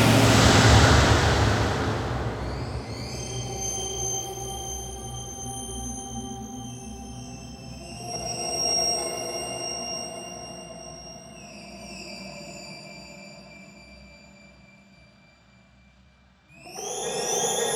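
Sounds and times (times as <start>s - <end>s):
noise with Ultraverb reverb: 0.0s - 5.2s.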